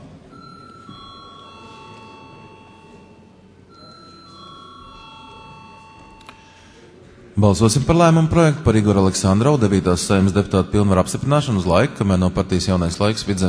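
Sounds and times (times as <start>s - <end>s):
chamber bell ringing: 0.3s - 6.8s
speech: 7.4s - 13.4s.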